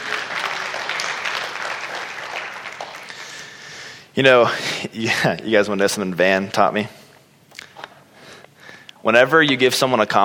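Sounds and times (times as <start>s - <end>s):
audience applause: 0.0s - 3.7s
speech: 4.2s - 7.0s, 9.0s - 10.2s.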